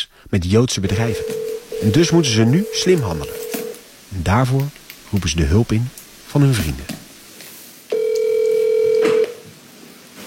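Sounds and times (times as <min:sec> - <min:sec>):
speech: 0:00.3 - 0:03.4, 0:04.1 - 0:07.0
telephone ringing: 0:00.9 - 0:03.8, 0:07.9 - 0:09.4.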